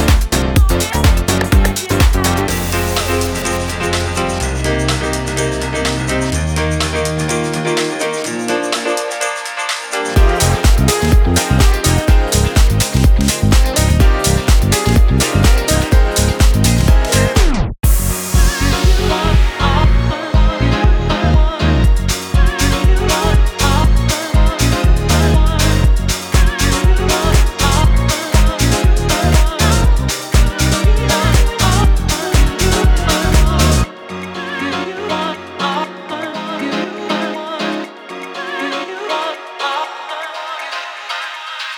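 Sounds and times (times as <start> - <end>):
piano house music: 0.0 - 41.7.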